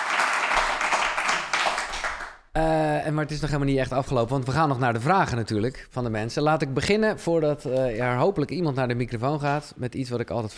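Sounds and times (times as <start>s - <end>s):
audience applause: 0.0s - 2.4s
speech: 2.6s - 10.5s.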